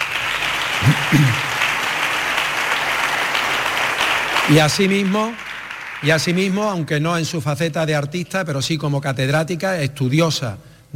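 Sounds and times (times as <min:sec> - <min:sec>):
audience applause: 0:00.0 - 0:06.9
speech: 0:00.8 - 0:01.5, 0:04.5 - 0:05.4, 0:06.0 - 0:10.9.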